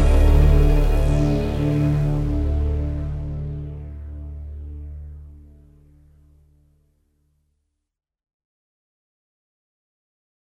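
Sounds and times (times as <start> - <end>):
battle background music: 0.0 - 3.3.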